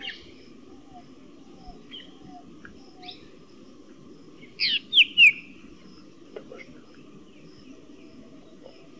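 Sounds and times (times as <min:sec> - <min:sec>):
black drongo giving harsh slurred calls: 0:00.0 - 0:03.4, 0:04.3 - 0:08.9.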